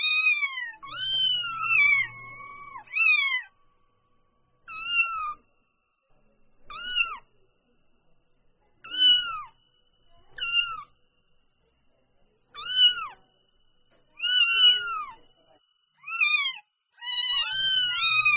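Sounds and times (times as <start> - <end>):
domestic cat kitten mewing: 0.0 - 3.5, 4.7 - 5.4, 6.7 - 7.2, 8.8 - 9.5, 10.4 - 10.9, 12.6 - 13.2, 14.2 - 15.2, 16.0 - 18.3.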